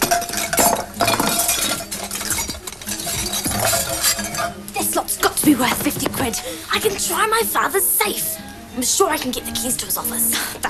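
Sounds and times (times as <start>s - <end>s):
ornaments clinking into a pillowcase: 0.0s - 6.7s
soft rustling: 1.8s - 7.2s
speech: 5.6s - 10.6s.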